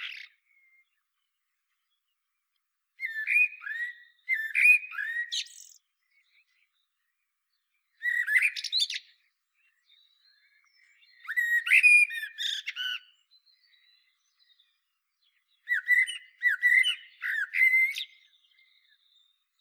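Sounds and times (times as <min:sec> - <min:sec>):
common blackbird Turdus merula singing: 0:00.0 - 0:01.2, 0:03.0 - 0:19.5.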